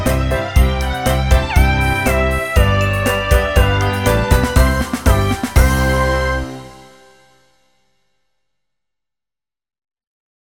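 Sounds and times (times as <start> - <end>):
orchestral version of a nursery rhyme: 0.0 - 7.3.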